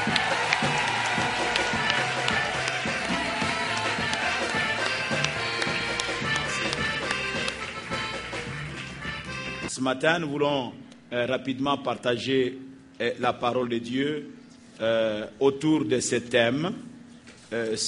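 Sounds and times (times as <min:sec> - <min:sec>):
church congregation cheering to acclaim the Lord: 0:00.0 - 0:06.8
rhythmic hand claps of a church congregation: 0:00.0 - 0:09.6
speech: 0:09.8 - 0:16.9, 0:17.5 - 0:17.8.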